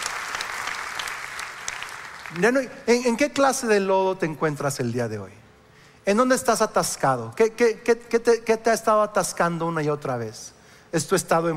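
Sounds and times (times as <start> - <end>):
church congregation clapping: 0.0 - 2.6
speech: 2.3 - 5.4, 6.0 - 11.5.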